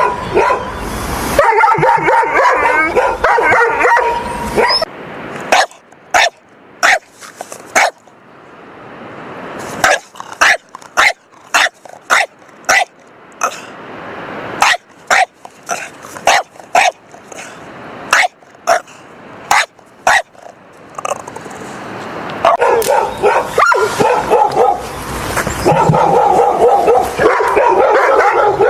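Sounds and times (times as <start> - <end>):
happy dog barking: 0.0 - 0.7, 1.4 - 4.9, 5.5 - 7.1, 7.7 - 8.0, 9.8 - 13.6, 14.6 - 17.5, 18.1 - 18.9, 19.5 - 20.4, 22.4 - 24.9, 25.6 - 28.6.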